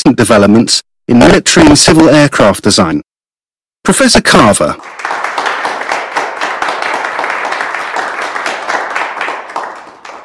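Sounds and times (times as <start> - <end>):
speech: 0.2 - 3.1, 3.8 - 5.3
audience applauding a professor: 4.8 - 10.2.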